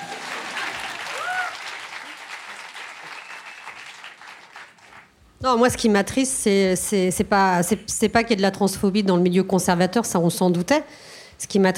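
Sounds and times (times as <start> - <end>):
audience applause: 0.0 - 5.1
speech: 5.4 - 11.7.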